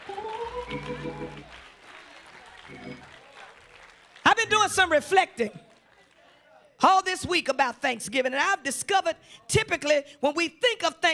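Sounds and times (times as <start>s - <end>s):
audience hand clapping: 0.0s - 6.4s
speech: 0.7s - 1.7s, 2.7s - 3.2s, 4.4s - 5.7s, 6.8s - 11.1s.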